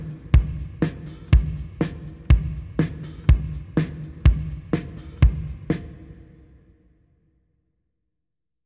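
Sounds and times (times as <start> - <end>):
drums: 0.0 - 6.7.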